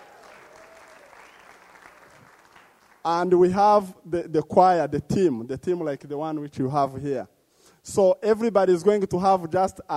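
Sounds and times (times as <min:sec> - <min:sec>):
audience clapping: 0:00.0 - 0:03.1
speech: 0:03.0 - 0:09.9.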